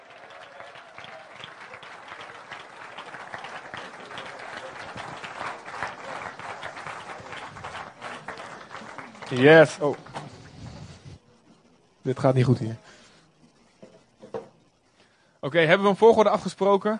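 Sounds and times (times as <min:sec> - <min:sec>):
brief cheers: 0:00.0 - 0:02.7
sustained audience applause: 0:00.0 - 0:10.6
speech: 0:09.3 - 0:10.0, 0:12.0 - 0:12.8, 0:15.4 - 0:16.9.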